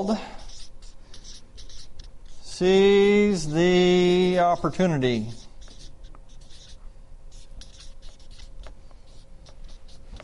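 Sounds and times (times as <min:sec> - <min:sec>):
speech: 0:00.0 - 0:00.4, 0:02.6 - 0:05.4
low steady hum: 0:00.0 - 0:10.2
hand-writing on a board: 0:00.4 - 0:10.2.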